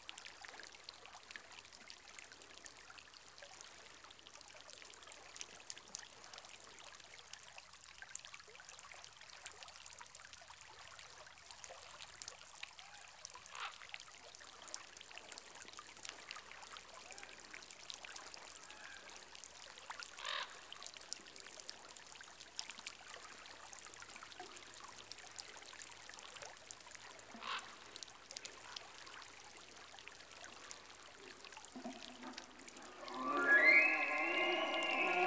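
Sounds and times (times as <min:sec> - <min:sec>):
elk in rainforest: 0:31.9 - 0:35.2.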